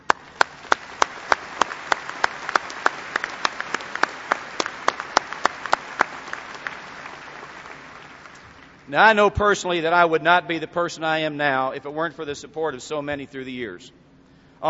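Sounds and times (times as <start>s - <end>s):
audience applause: 0.0s - 8.8s
speech: 8.9s - 14.0s.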